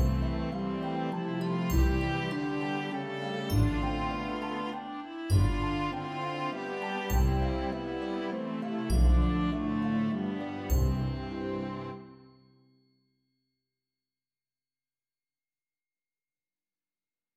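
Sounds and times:
viola melody: 0.0 - 12.2.

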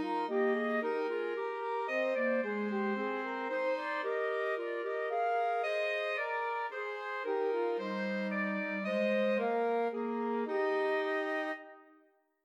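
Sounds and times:
alto saxophone playing Christmas trio: 0.0 - 12.0
clarinet playing Christmas trio: 0.0 - 12.2
flute playing Christmas trio: 0.0 - 12.2.

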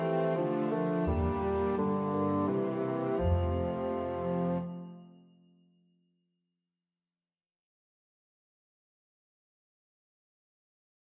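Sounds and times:
tenoroon melody: 0.0 - 5.4.

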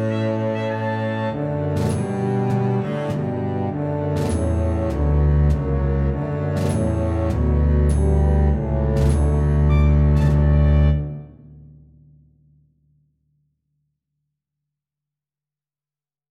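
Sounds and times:
melodic music track: 0.0 - 11.5.

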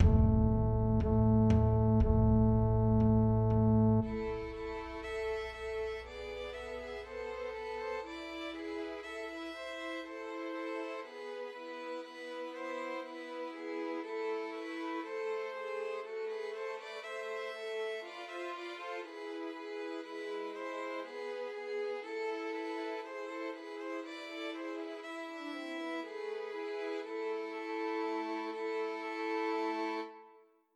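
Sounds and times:
three violins playing a Christmas trio: 0.0 - 30.4.

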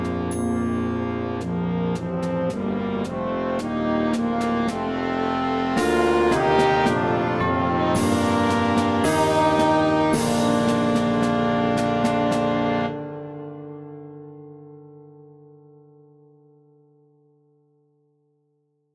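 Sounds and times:
clarinet melody: 0.0 - 14.0.

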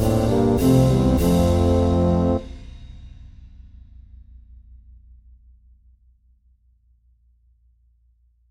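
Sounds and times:
tuba melody: 0.0 - 2.6.

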